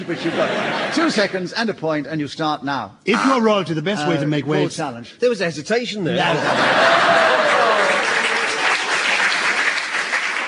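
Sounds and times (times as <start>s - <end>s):
laughter: 0.0s - 1.5s, 6.1s - 8.7s
speech: 0.0s - 7.5s
studio audience clapping: 6.5s - 10.4s.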